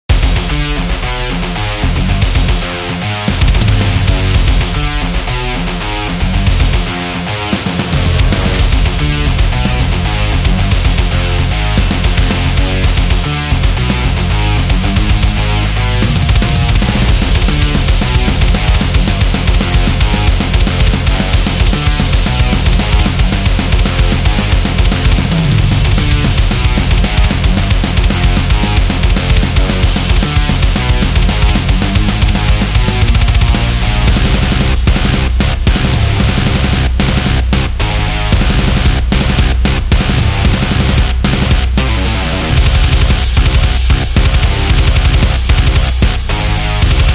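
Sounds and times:
death metal music: 0:00.0 - 0:47.1.

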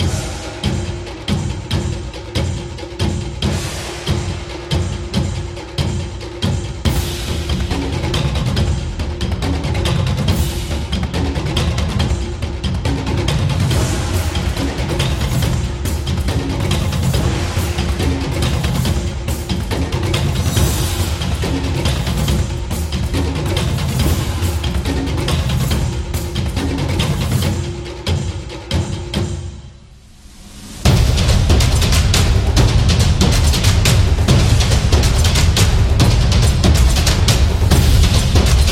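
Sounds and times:
Japanese drum playing: 0:00.0 - 0:29.6, 0:30.8 - 0:38.7.

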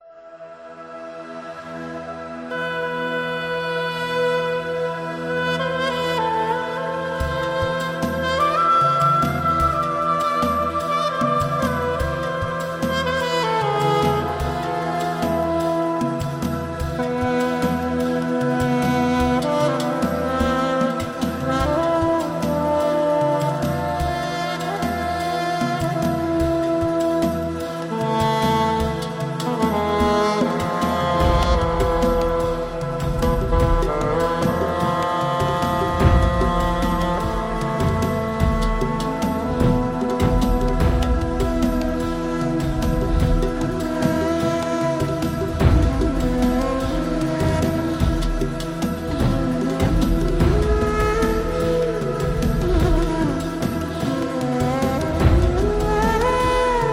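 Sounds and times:
traditional Arabic music: 0:00.0 - 0:56.9.

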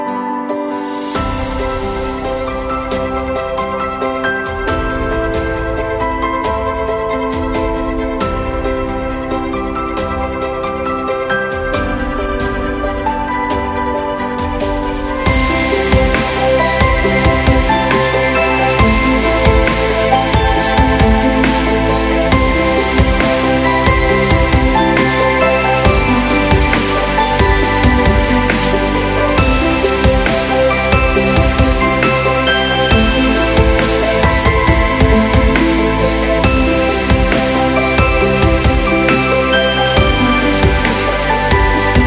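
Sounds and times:
inspirational cinematic corporate music: 0:00.1 - 0:42.0.

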